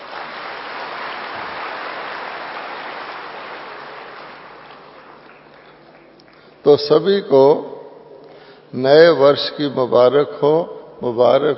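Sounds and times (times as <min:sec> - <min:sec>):
audience clapping: 0:00.0 - 0:06.6
speech: 0:06.7 - 0:07.7, 0:08.7 - 0:11.5.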